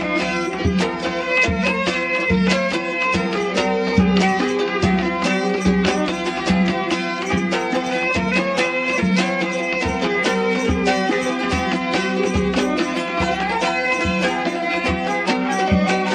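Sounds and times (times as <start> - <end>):
Welsh pipe tune: 0.0 - 16.1.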